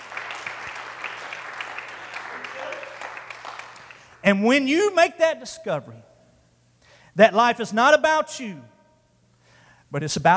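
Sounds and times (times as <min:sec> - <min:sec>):
audience clapping: 0:00.0 - 0:04.2
speech: 0:04.2 - 0:06.1, 0:07.2 - 0:08.7, 0:09.9 - 0:10.3.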